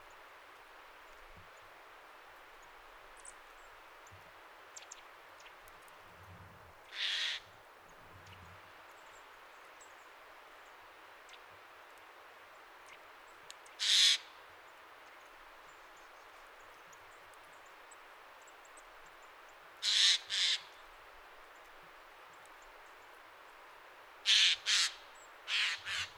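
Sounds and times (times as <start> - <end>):
Garrulus glandarius: 6.9 - 7.5, 19.8 - 20.8, 24.3 - 26.1.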